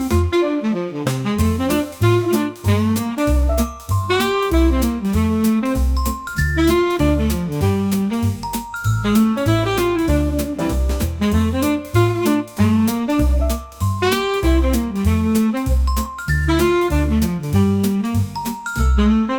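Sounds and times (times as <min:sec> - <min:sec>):
Christmas jazz swing music: 0:00.0 - 0:19.3
sleigh bells: 0:03.4 - 0:10.4, 0:15.6 - 0:17.6, 0:18.2 - 0:19.1.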